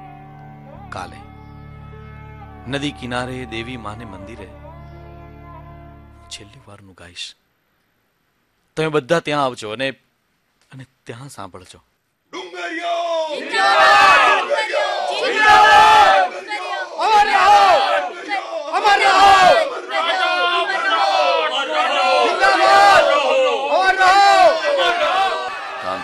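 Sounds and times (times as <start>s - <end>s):
speech: 0.9s - 1.3s, 2.6s - 4.6s, 6.3s - 7.4s, 8.8s - 10.0s, 10.7s - 11.9s, 12.7s - 14.0s
large crowd shouting and chanting on a river bank near a goddess temple: 12.3s - 26.0s.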